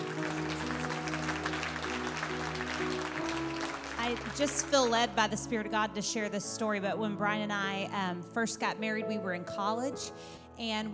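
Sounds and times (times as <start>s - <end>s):
audience applause: 0.0s - 5.0s
speech: 4.1s - 10.9s.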